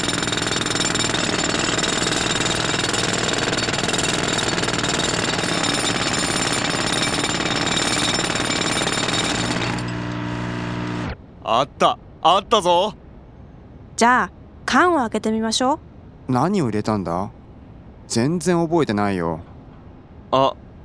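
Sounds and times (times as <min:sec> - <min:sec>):
jackhammer tearing into the ground: 0:00.0 - 0:11.1
steady hum: 0:00.0 - 0:20.8
speech: 0:11.8 - 0:13.0, 0:14.0 - 0:17.4, 0:18.1 - 0:19.5, 0:20.3 - 0:20.6.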